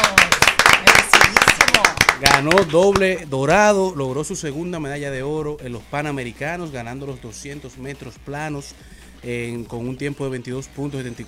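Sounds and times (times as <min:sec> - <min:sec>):
hands clapping: 0:00.0 - 0:03.2
speech: 0:02.2 - 0:11.2.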